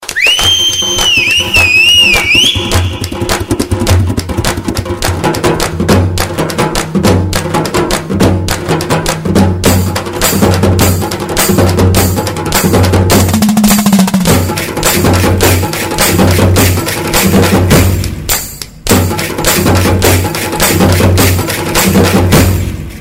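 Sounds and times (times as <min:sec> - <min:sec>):
party rhythm: 0:00.0 - 0:22.9.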